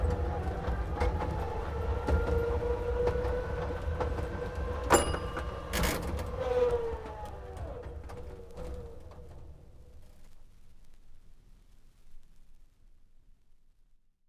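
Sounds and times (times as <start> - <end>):
tram: 0.0 - 9.5.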